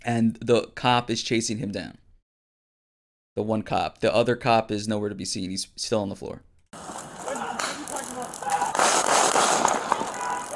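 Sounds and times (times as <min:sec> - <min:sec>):
speech: 0:00.0 - 0:02.0, 0:03.4 - 0:06.5
gunshots in a played video: 0:06.8 - 0:10.5.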